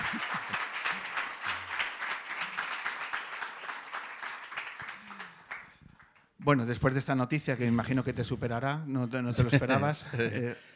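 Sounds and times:
crowd applauding: 0:00.0 - 0:06.2
speech: 0:06.4 - 0:10.7.

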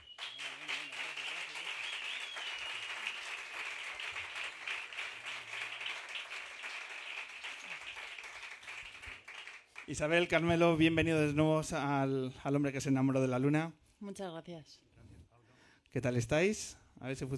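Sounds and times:
audience applause: 0:00.0 - 0:10.1
speech: 0:09.9 - 0:14.9, 0:15.9 - 0:17.3.

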